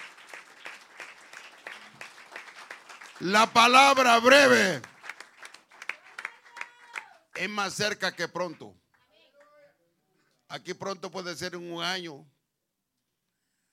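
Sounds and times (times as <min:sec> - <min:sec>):
audience clapping loudly: 0:00.0 - 0:09.6
speech: 0:03.2 - 0:04.9, 0:07.4 - 0:08.8, 0:10.5 - 0:12.4
loud voiced shout or cheer: 0:03.4 - 0:04.8, 0:06.1 - 0:07.3.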